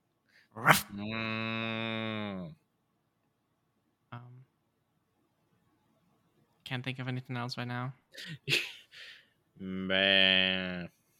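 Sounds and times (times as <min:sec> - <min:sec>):
speech: 0:00.6 - 0:01.8, 0:06.7 - 0:08.7, 0:09.6 - 0:11.0
person imitating a cow mooing: 0:00.6 - 0:02.5.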